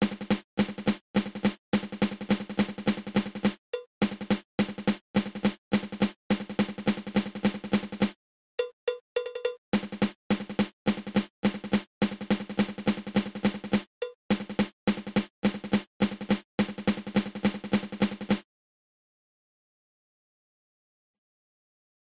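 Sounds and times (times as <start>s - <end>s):
drum flam accent rudiment: 0.0s - 8.2s, 9.8s - 18.4s.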